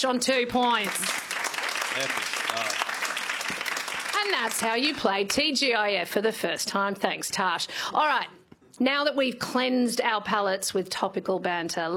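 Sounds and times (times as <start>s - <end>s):
speech: 0.0s - 1.3s, 2.0s - 2.9s, 4.2s - 11.9s
audience applause for a contestant in a comedy news quiz game: 0.6s - 5.0s.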